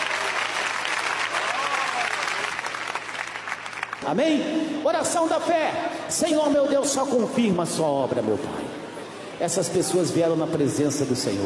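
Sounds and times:
congregation clapping hands during a church service: 0.0 - 4.2
speech: 4.0 - 8.8, 9.4 - 11.4.

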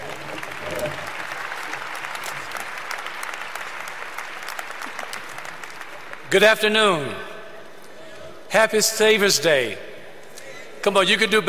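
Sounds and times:
audience applause: 0.0 - 6.3
speech: 6.3 - 7.3, 8.5 - 9.8, 10.8 - 11.4.

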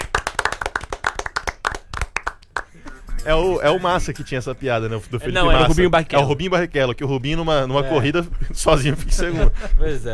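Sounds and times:
clapping applause: 0.0 - 3.2
speech: 3.2 - 10.1.

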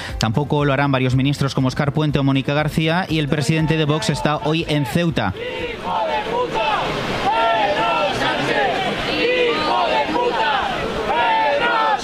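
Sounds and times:
speech: 0.2 - 7.2
large crowd chanting and jeering: 3.4 - 12.0.

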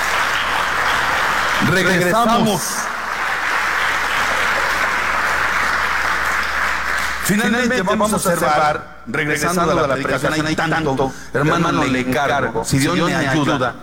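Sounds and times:
audience applause: 0.0 - 7.5
speech: 1.6 - 2.8, 7.3 - 13.8.

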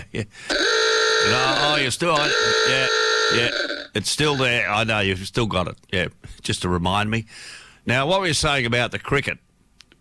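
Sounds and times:
speech: 0.1 - 9.4
Klaxon horn: 0.5 - 3.8.

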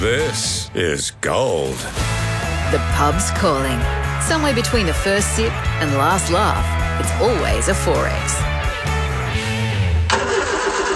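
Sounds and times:
speech: 0.0 - 8.5
ute engine starting and idling: 9.8 - 10.9.

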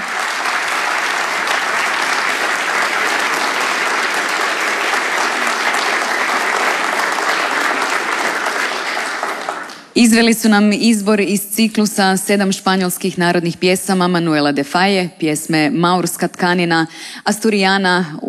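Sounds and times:
concert audience applause for an opera singer and a young guitarist: 0.0 - 10.0
speech: 10.0 - 18.2.

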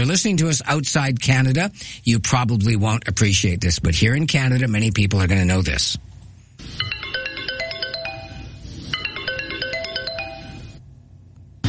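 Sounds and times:
speech: 0.0 - 6.7
BlackBerry Curve phone ringtone: 6.8 - 10.8.

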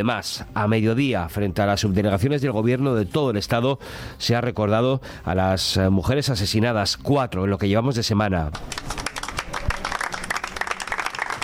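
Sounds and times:
speech: 0.0 - 9.0
applause ending a minute of silence: 8.5 - 11.4.

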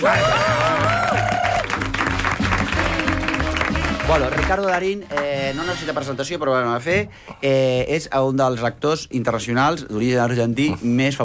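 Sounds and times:
speech: 0.0 - 0.3, 4.1 - 11.2
audience applause: 0.0 - 4.9.

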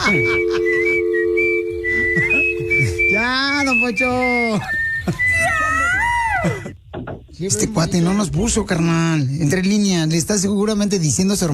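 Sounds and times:
speech: 0.1 - 0.4, 3.7 - 5.2, 7.4 - 11.5
person whistling a tune: 0.1 - 5.8.

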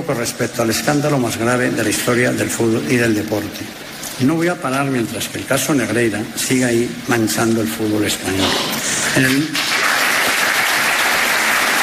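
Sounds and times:
speech: 0.0 - 9.7
loud sustained ovation from a large audience: 9.1 - 11.8.

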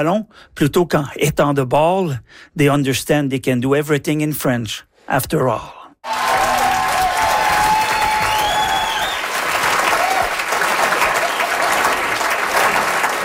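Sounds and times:
speech: 0.0 - 6.4
prerecorded applause: 6.0 - 13.2.

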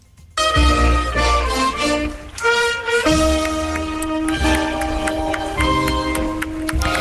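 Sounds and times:
town band playing in religious procession: 0.4 - 6.9
applause at the Santa Ana procession in Tudela: 1.4 - 6.9.

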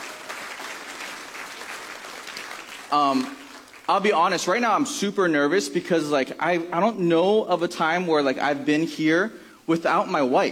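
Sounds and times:
crowd applauding: 0.0 - 4.1
speech: 2.9 - 10.5.

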